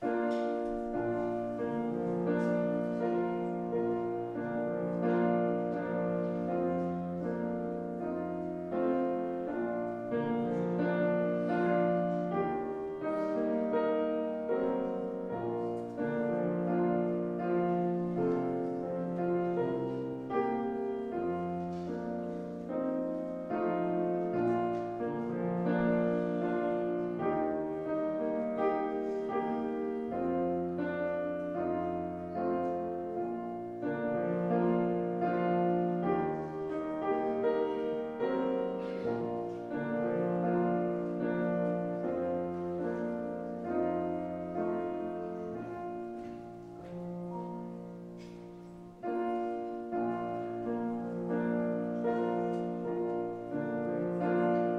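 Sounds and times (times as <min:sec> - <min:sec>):
prelude music: 0:00.0 - 0:54.7.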